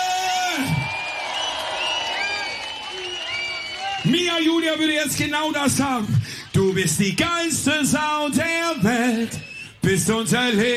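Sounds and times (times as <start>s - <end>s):
audience cheering: 0.0s - 7.3s
speech: 0.6s - 0.9s, 4.7s - 10.7s
audience applause: 0.6s - 4.8s
piercing whistles: 1.2s - 4.1s, 9.3s - 9.8s.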